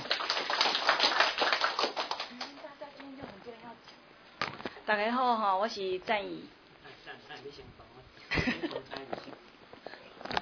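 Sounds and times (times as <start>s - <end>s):
small group applauding: 0.0s - 2.6s
speech: 4.9s - 6.6s, 7.4s - 9.4s.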